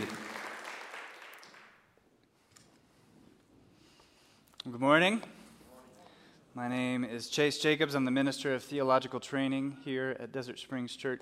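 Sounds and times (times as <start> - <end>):
crowd clapping hands: 0.0 - 2.0
speech: 4.8 - 5.4, 6.6 - 11.2.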